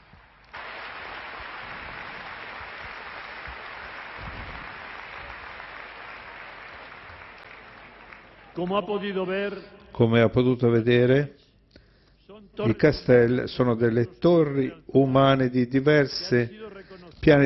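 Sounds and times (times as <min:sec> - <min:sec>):
crowd applause: 0:00.0 - 0:08.6
speech: 0:08.6 - 0:11.4, 0:12.6 - 0:16.6, 0:17.2 - 0:17.4.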